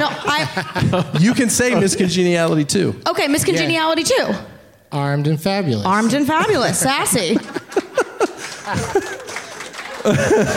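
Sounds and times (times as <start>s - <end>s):
laughter: 0.0s - 2.4s, 6.9s - 10.5s
speech: 0.1s - 7.9s, 8.7s - 9.2s, 10.0s - 10.5s
slow claps: 7.6s - 10.5s.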